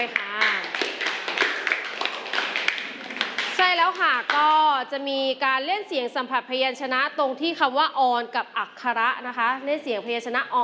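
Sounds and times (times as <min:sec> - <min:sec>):
speech: 0:00.0 - 0:00.6, 0:03.9 - 0:10.6
group clapping: 0:00.0 - 0:04.7.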